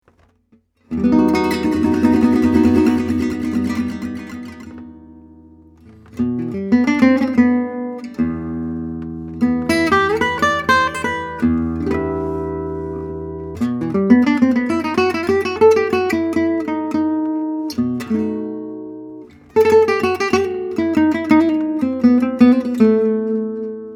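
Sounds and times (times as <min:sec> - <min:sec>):
gypsy guitar: 0:00.0 - 0:23.9.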